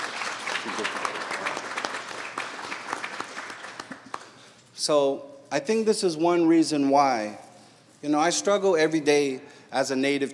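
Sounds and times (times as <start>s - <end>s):
audience applause: 0.0s - 4.4s
speech: 4.8s - 7.4s, 8.0s - 10.3s.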